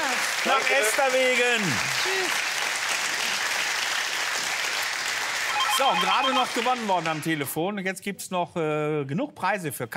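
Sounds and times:
applause: 0.0s - 7.6s
speech: 0.4s - 2.5s, 5.8s - 9.9s.

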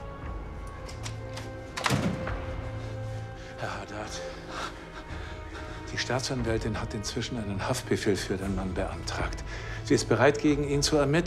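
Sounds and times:
door being shut: 1.0s - 2.7s
speech: 5.9s - 11.2s.

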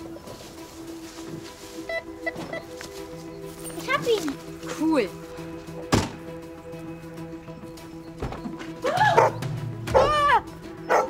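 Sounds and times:
speech: 4.0s - 5.2s
dog barking: 9.0s - 10.1s, 10.9s - 11.0s.

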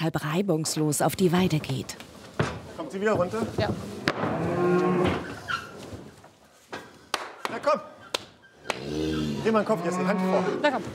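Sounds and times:
speech: 0.0s - 4.9s, 9.4s - 10.9s
mother cows mooing: 4.2s - 5.5s, 8.7s - 10.8s.

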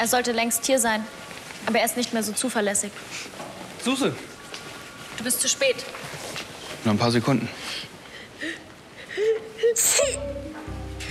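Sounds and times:
speech: 0.0s - 4.3s, 5.2s - 6.2s, 6.8s - 8.6s, 9.7s - 10.4s
sneeze: 9.8s - 10.2s.

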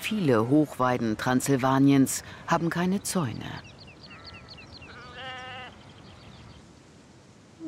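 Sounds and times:
speech: 0.1s - 3.7s
sheep bleating in a herd: 4.9s - 5.8s.

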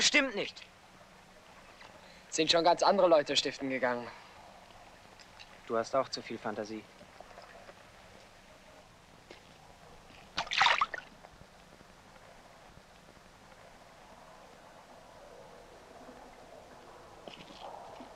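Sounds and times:
speech: 0.0s - 0.7s, 2.4s - 4.2s, 5.7s - 7.0s
soft water trickles: 0.0s - 18.1s
fish splashing in water: 10.4s - 11.1s.

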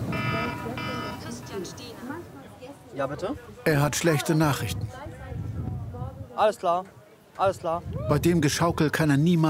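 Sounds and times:
telephone ringing: 0.1s - 1.5s
speech: 3.0s - 5.1s, 6.4s - 9.4s.

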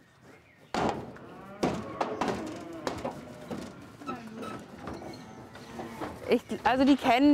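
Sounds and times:
metallic bangs and hollow thumps of cows being loaded onto a trailer: 0.7s - 6.8s
rattling: 0.8s - 7.0s
cows lowing: 0.9s - 6.6s
speech: 6.3s - 7.3s.

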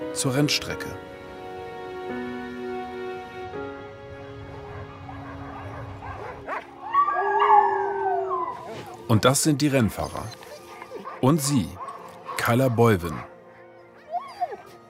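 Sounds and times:
speech: 0.2s - 1.1s, 9.1s - 10.5s, 11.2s - 11.8s, 12.5s - 13.3s
sled dogs howling: 4.5s - 9.1s, 10.0s - 14.8s.

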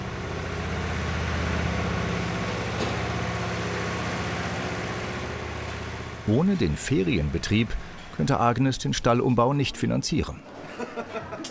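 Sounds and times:
tractor engine running: 0.0s - 9.9s
speech: 6.3s - 11.4s
laughter: 10.5s - 11.4s.

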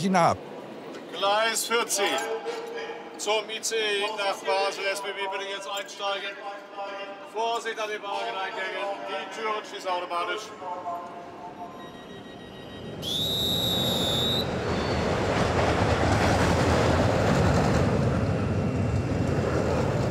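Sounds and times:
speech: 0.0s - 0.5s, 1.2s - 11.2s, 13.0s - 13.9s
roller coaster on a test run rumbling along its track: 12.8s - 20.0s.

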